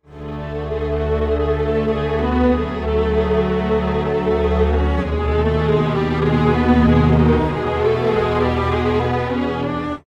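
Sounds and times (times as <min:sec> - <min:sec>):
time-stretched strings: 0:00.1 - 0:10.0.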